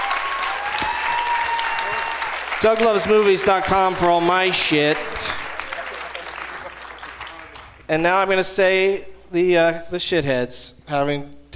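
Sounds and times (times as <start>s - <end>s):
audience applause: 0.0s - 7.8s
speech: 2.6s - 5.4s, 7.9s - 11.5s.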